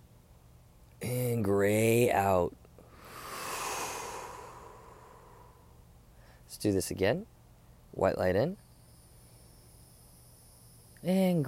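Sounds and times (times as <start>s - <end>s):
speech: 1.4s - 2.6s, 6.6s - 7.4s, 8.0s - 8.6s, 11.0s - 11.4s
deep breath in and out during a guided meditation: 2.8s - 6.5s.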